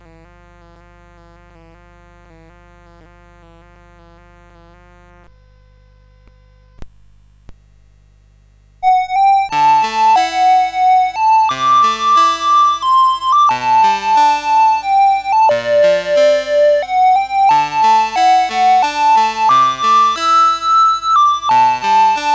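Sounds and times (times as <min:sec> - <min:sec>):
chiptune theme on CSG8580 sound chip: 0:08.8 - 0:22.3.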